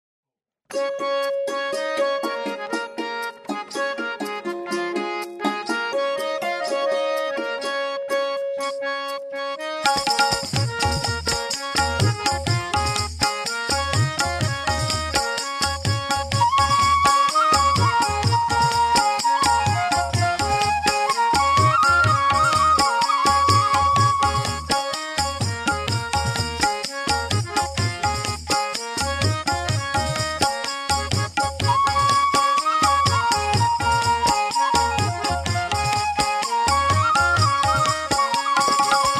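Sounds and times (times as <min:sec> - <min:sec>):
ladies karaoke track in C sharp pancham: 0:01.0 - 0:39.1.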